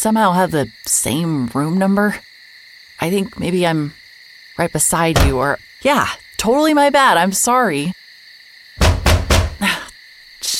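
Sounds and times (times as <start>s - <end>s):
speech: 0.0s - 2.3s, 3.0s - 4.0s, 4.6s - 8.0s
banging on a wall: 8.8s - 9.6s.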